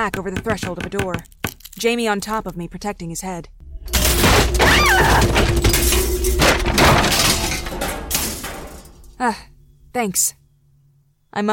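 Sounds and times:
speech: 0:00.0 - 0:07.2, 0:09.2 - 0:10.4, 0:11.3 - 0:11.5
ceiling cracking and caving in: 0:03.7 - 0:09.5.

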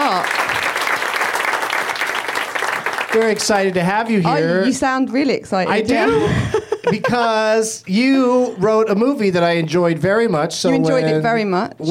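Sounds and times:
audience applause: 0:00.0 - 0:04.0
speech: 0:03.1 - 0:11.9
laughter: 0:05.7 - 0:07.6.

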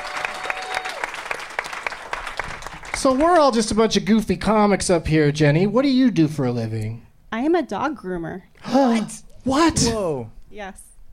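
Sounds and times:
audience applause: 0:00.0 - 0:03.6
speech: 0:03.0 - 0:10.8.

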